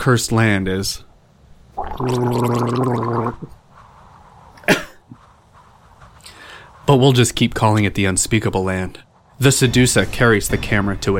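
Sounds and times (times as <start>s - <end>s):
speech: 0.0s - 1.1s, 2.0s - 3.6s, 6.9s - 11.1s
voice gargling in imitation of the invented evil language Gargletongue: 1.8s - 3.6s.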